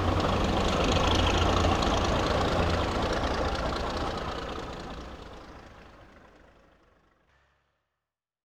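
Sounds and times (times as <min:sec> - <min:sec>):
fishing boat hauling in nets: 0:00.0 - 0:04.9.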